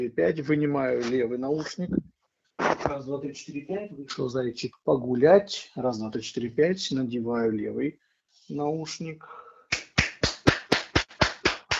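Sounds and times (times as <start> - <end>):
speech: 0.0 - 9.4
loud hand claps for an audio test: 9.7 - 11.7.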